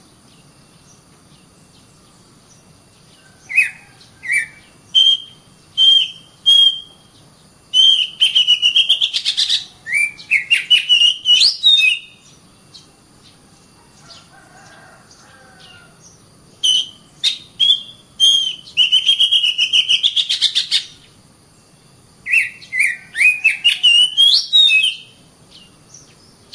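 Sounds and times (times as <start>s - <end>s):
Oriental magpie-robin song: 3.4s - 14.3s, 15.6s - 21.2s, 22.3s - 26.5s.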